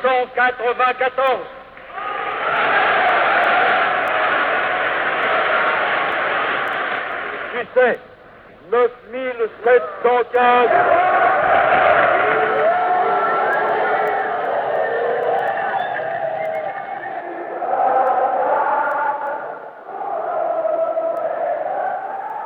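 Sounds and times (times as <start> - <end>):
speech: 0.0 - 1.6, 2.4 - 2.9, 7.6 - 8.1, 8.7 - 11.1
party activists cheering at a polling station: 0.0 - 22.4.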